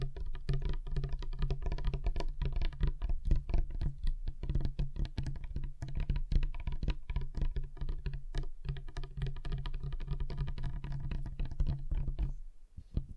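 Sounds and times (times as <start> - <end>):
fingers tapping on a table: 0.0 - 13.1.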